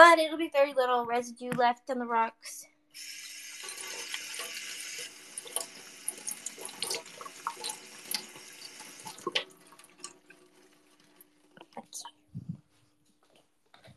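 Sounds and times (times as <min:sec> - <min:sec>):
speech: 0:00.1 - 0:04.0
tap water running from a faucet: 0:03.0 - 0:11.8.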